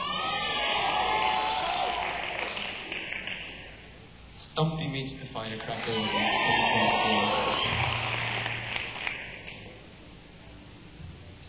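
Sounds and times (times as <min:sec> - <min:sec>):
faint crowd cheering: 0:00.0 - 0:04.0, 0:05.5 - 0:09.9
wedding reception guests clapping: 0:00.3 - 0:03.9, 0:05.8 - 0:09.9
speech: 0:04.6 - 0:07.4.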